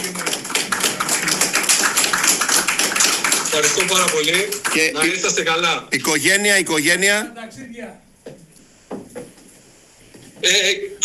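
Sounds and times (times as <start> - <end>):
people applauding: 0.0 - 5.4
speech: 3.6 - 8.4, 10.4 - 11.0.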